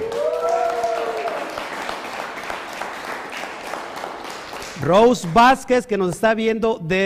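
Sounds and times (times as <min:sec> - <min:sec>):
audience applause: 0:00.0 - 0:05.6
speech: 0:04.8 - 0:07.0.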